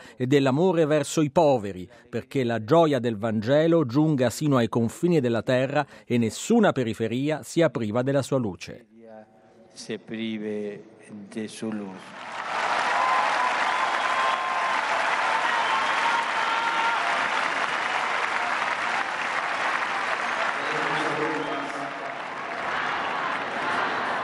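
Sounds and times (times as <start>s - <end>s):
speech: 0.2s - 12.6s
huge outdoor crowd applauding: 12.0s - 24.2s
scattered cheers and voices: 12.2s - 24.2s.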